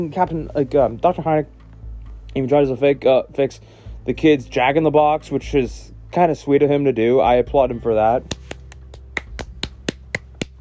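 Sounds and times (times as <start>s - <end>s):
speech: 0.0s - 1.6s, 2.3s - 8.4s
sharp hand claps: 8.2s - 10.5s.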